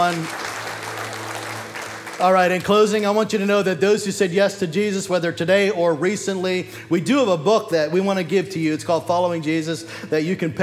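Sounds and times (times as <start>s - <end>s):
speech: 0.0s - 0.5s, 2.2s - 10.6s
audience applauding: 0.0s - 3.4s.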